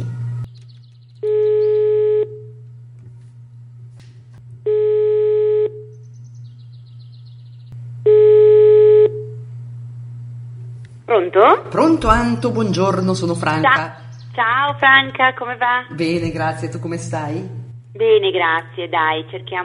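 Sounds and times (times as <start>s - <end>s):
constant low hum: 0.0s - 19.6s
telephone ringback tone while placing a call: 1.2s - 2.6s, 4.7s - 5.9s, 8.1s - 9.4s
speech: 11.2s - 19.6s.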